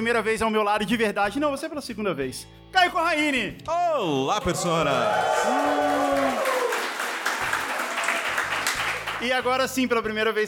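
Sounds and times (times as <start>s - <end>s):
speech: 0.0s - 6.4s, 9.2s - 10.4s
live audience applause: 4.4s - 9.4s.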